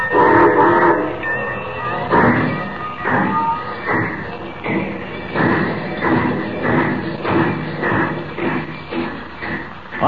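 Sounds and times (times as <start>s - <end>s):
whistle-like tone: 0.0s - 4.4s
steam train engine chuffing pulling away: 0.0s - 10.0s.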